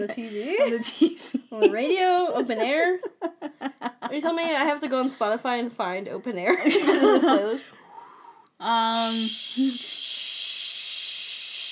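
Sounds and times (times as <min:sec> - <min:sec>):
speech: 0:00.0 - 0:07.8, 0:08.6 - 0:10.0
voice imitating static white noise: 0:08.9 - 0:11.7.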